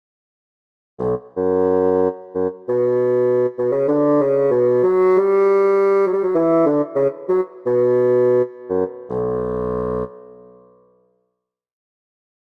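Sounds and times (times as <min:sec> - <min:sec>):
woodwind instruments: 0:01.0 - 0:10.9.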